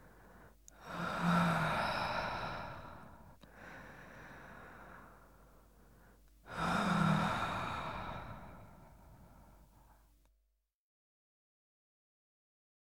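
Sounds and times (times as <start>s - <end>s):
woman breathing heavily: 0.0s - 10.2s.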